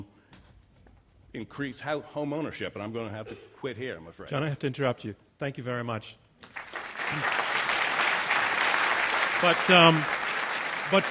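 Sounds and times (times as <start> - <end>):
speech: 1.3 - 7.4, 9.4 - 10.2
audience applause: 6.4 - 11.0.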